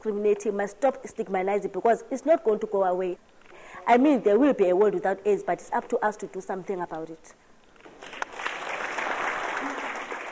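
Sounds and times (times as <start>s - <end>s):
speech: 0.0s - 7.4s
crowd applauding: 7.9s - 10.3s.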